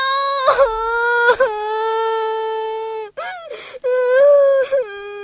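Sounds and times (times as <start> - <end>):
child crying after being teased by an older sibling: 0.2 - 5.2.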